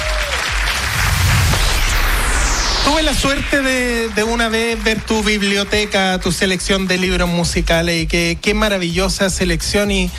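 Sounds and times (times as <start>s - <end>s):
audience applause at an awards ceremony for books about music: 0.0s - 2.2s, 2.9s - 7.1s
speech: 2.9s - 10.1s.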